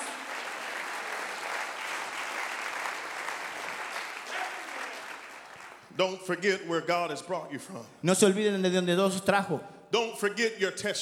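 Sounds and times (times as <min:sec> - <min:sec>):
audience clapping: 0:00.0 - 0:06.4
speech: 0:06.0 - 0:10.9.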